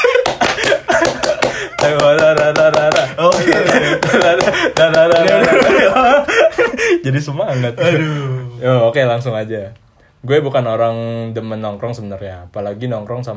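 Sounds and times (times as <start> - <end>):
Indonesian scout rhythmic clapping by a group: 0.0 - 6.4
laughter: 0.0 - 8.4
speech: 7.2 - 13.3.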